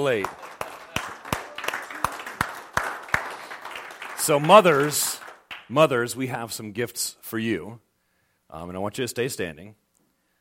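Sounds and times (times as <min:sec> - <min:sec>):
speech: 0:00.0 - 0:00.4, 0:04.2 - 0:07.8, 0:08.5 - 0:09.8
scattered applause from a small crowd: 0:00.0 - 0:05.7.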